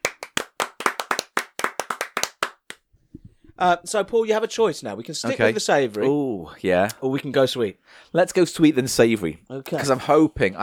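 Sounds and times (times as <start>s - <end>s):
single pair of hands clapping: 0.0s - 2.9s
speech: 3.6s - 10.6s.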